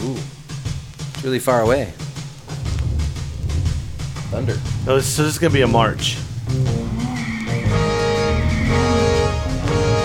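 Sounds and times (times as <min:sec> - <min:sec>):
speech: 0:01.2 - 0:02.0, 0:04.3 - 0:06.7
low traffic rumble: 0:01.9 - 0:10.0
several car horns honking: 0:06.8 - 0:10.0.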